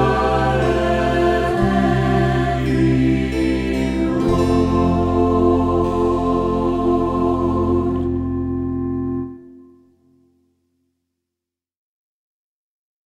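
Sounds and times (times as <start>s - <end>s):
choir singing a melody: 0.0s - 9.7s.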